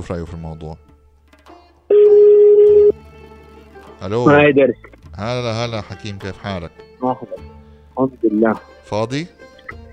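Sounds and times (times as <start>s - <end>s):
speech: 0.0s - 0.9s, 4.0s - 9.4s
telephone dialing tone: 1.9s - 2.9s.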